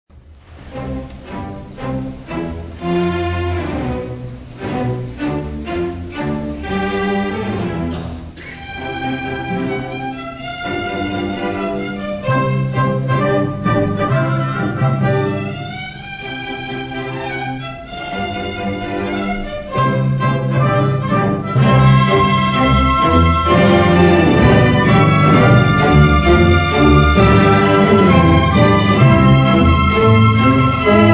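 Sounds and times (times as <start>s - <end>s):
piano concerto: 0.1s - 31.1s.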